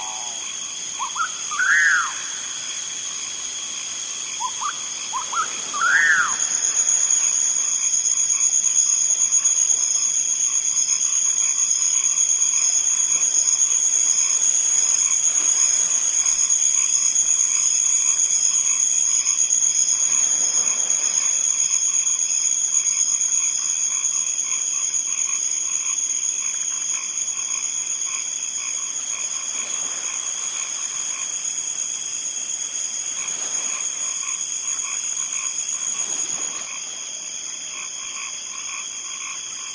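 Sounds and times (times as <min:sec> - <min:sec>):
rainforest at night by Arenal Lake: 0:00.0 - 0:39.7.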